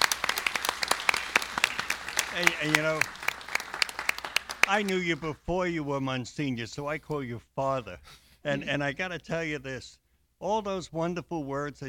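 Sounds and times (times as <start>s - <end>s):
live audience applause at St. Catherine of Siena: 0.0s - 5.3s
speech: 2.4s - 3.3s, 4.7s - 11.8s.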